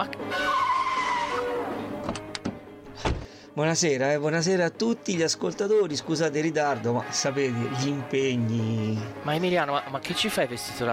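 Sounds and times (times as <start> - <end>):
car arriving with screeching tires: 0.2 - 2.0
speech: 3.6 - 10.9.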